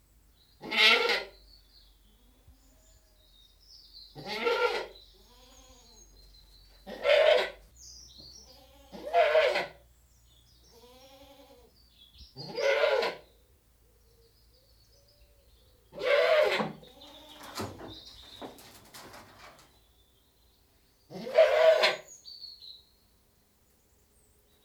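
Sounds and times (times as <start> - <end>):
British goat bleating: 0.6 - 1.3, 4.2 - 6.0, 6.8 - 7.6, 8.4 - 9.8, 10.7 - 11.7, 12.4 - 13.2, 16.0 - 17.8, 21.1 - 22.1.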